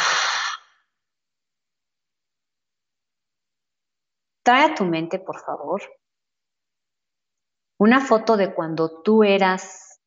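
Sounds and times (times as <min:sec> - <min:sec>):
deep exhale through the mouth during a guided breathing exercise: 0:00.0 - 0:00.7
speech: 0:04.5 - 0:06.0, 0:07.8 - 0:09.9.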